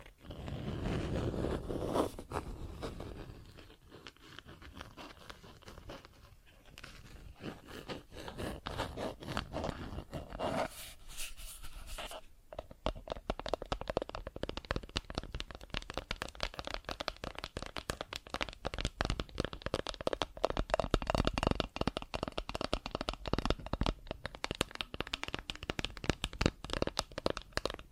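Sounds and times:
plastic objects tapped and scratched: 0.0 - 10.6, 11.9 - 27.9.

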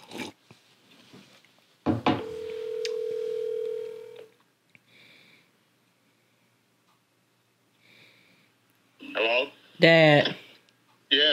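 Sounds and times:
clattering knocks: 1.9 - 2.4
electronic phone tone: 2.2 - 4.3
speech: 9.8 - 10.4.

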